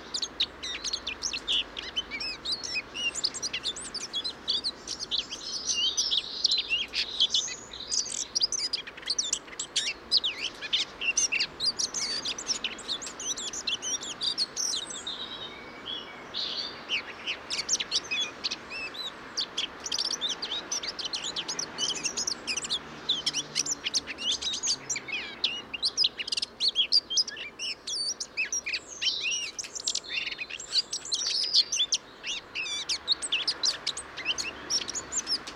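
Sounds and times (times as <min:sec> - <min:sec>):
Eurasian blackcap warbling song: 0:00.0 - 0:35.5.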